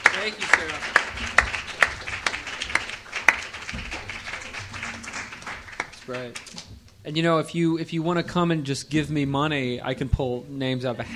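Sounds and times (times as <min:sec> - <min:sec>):
sparse applause: 0:00.0 - 0:06.7
speech: 0:00.2 - 0:01.6, 0:06.1 - 0:11.1.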